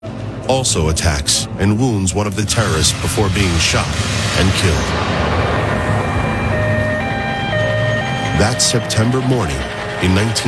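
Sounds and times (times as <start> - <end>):
rumble of military trucks: 0.0 - 10.4
speech: 0.5 - 5.4, 8.4 - 10.4
sirens: 4.6 - 10.4.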